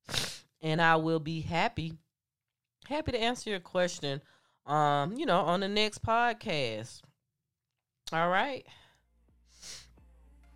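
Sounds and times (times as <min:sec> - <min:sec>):
person sniffling: 0:00.0 - 0:00.5, 0:09.5 - 0:10.0
speech: 0:00.6 - 0:02.0, 0:02.9 - 0:07.1, 0:08.1 - 0:08.8.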